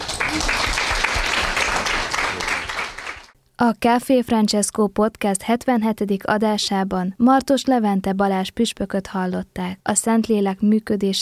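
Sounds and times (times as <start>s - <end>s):
crowd applause: 0.0s - 3.4s
speech: 3.6s - 11.1s.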